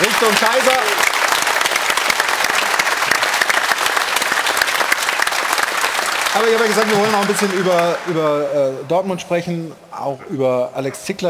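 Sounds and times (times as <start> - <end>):
audience applause: 0.0 - 9.0
speech: 0.2 - 1.1, 6.4 - 11.2.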